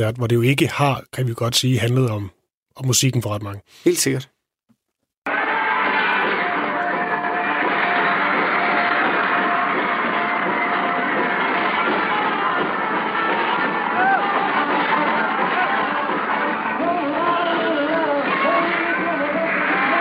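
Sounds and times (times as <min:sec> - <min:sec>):
speech: 0:00.0 - 0:04.4
crowd screaming at arena concert: 0:05.3 - 0:20.0.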